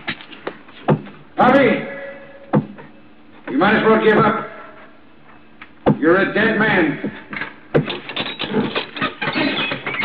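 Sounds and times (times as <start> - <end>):
speech: 1.4 - 1.9, 3.6 - 4.5, 6.1 - 7.2
door opening: 7.3 - 10.0.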